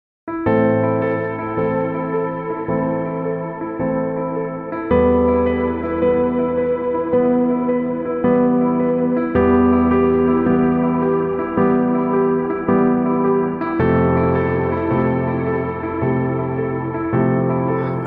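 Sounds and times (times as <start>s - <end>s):
sad love music: 0.4s - 18.0s.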